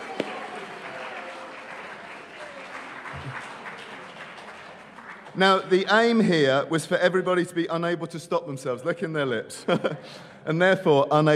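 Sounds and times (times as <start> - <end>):
audience clapping: 0.0 - 6.3
speech: 5.4 - 11.3.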